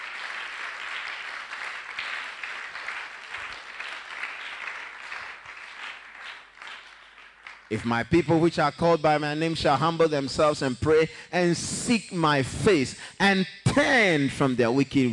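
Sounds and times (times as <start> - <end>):
audience clapping: 0.0 - 8.4
speech: 7.7 - 15.1.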